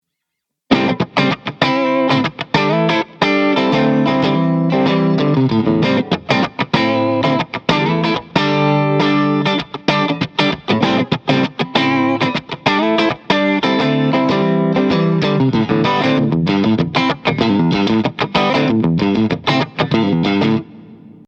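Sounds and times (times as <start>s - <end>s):
guitar pickups: 0.7s - 21.2s.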